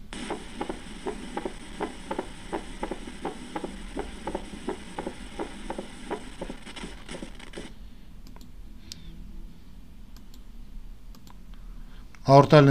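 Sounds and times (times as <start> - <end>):
faint hiss: 0.0 - 10.3
mitral valve opening snap heart sound: 0.1 - 7.7
speech: 12.3 - 12.6.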